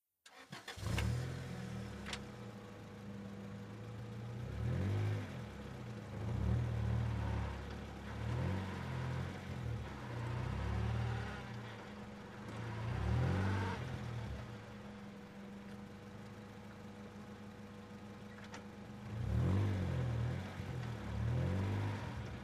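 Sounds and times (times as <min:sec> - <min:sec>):
Acura Integra engine starting: 0:00.2 - 0:22.4
Acura Integra gear shifting: 0:00.3 - 0:22.4.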